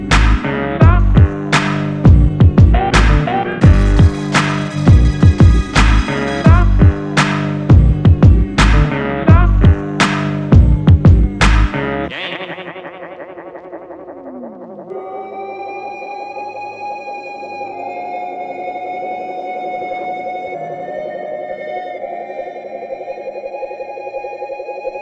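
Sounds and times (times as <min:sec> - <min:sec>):
instrumental music: 0:00.2 - 0:13.0.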